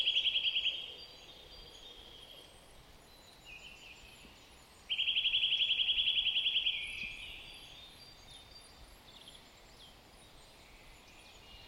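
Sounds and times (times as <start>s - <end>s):
Eurasian nuthatch (Sitta europaea) trilling calls: 0.0s - 1.0s, 4.9s - 7.7s.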